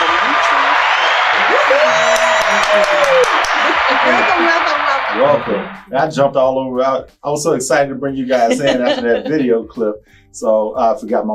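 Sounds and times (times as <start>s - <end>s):
high whoop: 0.0s - 5.6s
talk show studio audience clapping and cheering: 0.0s - 5.9s
laughter: 0.0s - 6.2s, 7.6s - 9.9s
speech: 2.7s - 11.3s.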